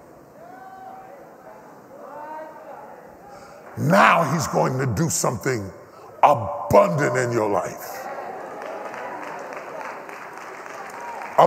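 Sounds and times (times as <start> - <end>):
speech: 3.8 - 8.0
audience clapping: 6.8 - 11.4.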